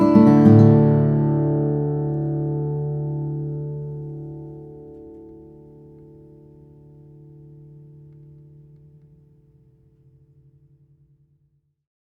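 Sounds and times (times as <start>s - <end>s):
OM steel string flattop guitar of Brazilian rosewood and sinker redwood: 0.0s - 9.6s.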